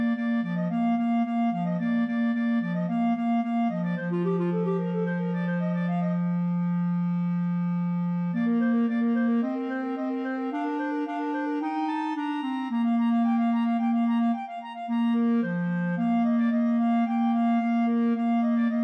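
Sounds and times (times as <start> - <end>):
clarinet trio playing: 0.0 - 18.8.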